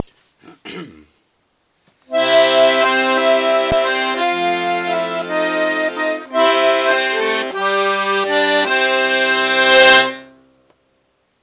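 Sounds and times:
new accordion playing an intro: 0:02.1 - 0:10.5.

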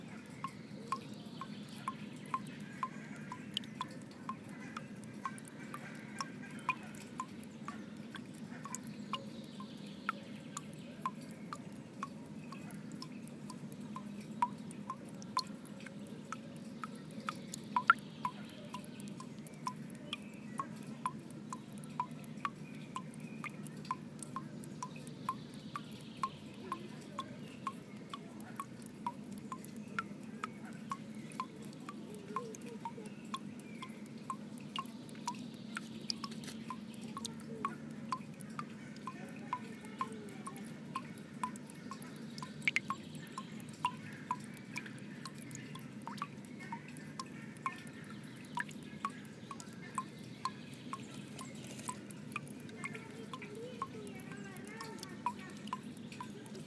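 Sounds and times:
water dripping into a drinking fountain in Kaivopuisto Brunnsparken: 0:00.0 - 0:56.6.

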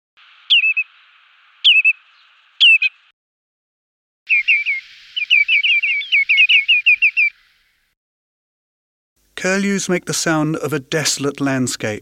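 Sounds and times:
redshank alarm call: 0:00.2 - 0:03.1, 0:04.3 - 0:07.9
speech: 0:09.4 - 0:12.0.

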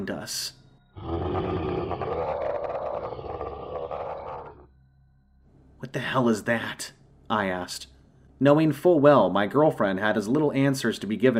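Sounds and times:
speech: 0:00.0 - 0:02.1, 0:05.9 - 0:11.3
wailing howl: 0:01.0 - 0:04.7.

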